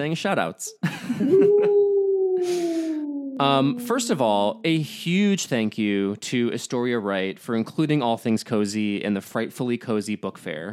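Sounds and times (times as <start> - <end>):
speech: 0.0 - 1.8, 2.4 - 2.8, 3.4 - 10.7
laughter: 0.8 - 2.9
wolf howl sound effect: 1.3 - 5.2.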